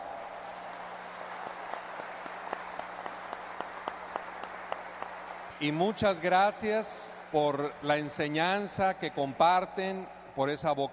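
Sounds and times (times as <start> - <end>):
audience applause: 0.0 - 8.7
speech: 5.6 - 10.9.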